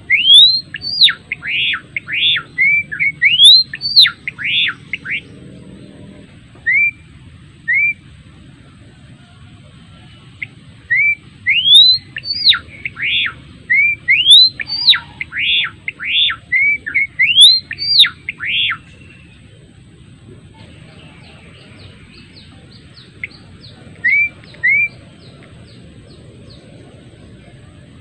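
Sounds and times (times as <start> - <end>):
adult male Java sparrow singing whistled notes: 0.0 - 6.0, 6.6 - 8.0, 10.4 - 19.4, 20.9 - 26.7.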